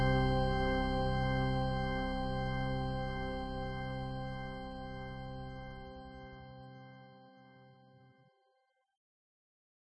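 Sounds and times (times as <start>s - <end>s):
spooky church ambience: 0.0s - 6.5s.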